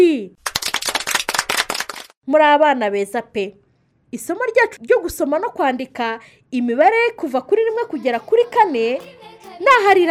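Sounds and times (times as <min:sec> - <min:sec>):
children applauding after a counting lesson: 0:00.5 - 0:02.1
speech: 0:02.3 - 0:10.0.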